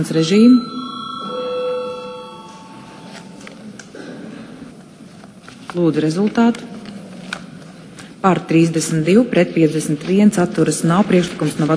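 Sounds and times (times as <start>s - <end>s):
speech: 0.0s - 0.8s, 5.8s - 6.7s, 8.2s - 11.7s
parliament voting bell ringing: 0.0s - 3.8s.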